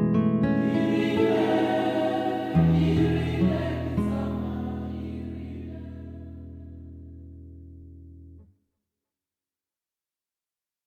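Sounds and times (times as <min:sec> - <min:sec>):
Namibian ethnic ballad: 0:00.5 - 0:06.8.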